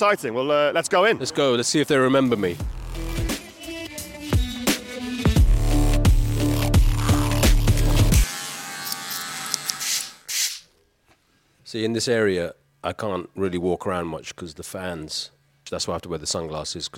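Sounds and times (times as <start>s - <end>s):
speech: 0.0s - 3.2s, 11.7s - 16.9s
music: 2.3s - 8.3s
electric clippers in Hair by Michael salon in Edgware: 5.5s - 10.6s
scissors snipping: 8.8s - 10.1s.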